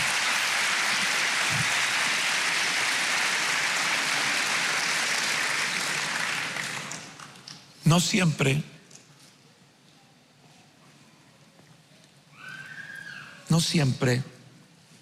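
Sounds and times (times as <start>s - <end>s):
audience clapping hands: 0.0s - 7.5s
speech: 7.9s - 8.8s, 13.6s - 14.3s.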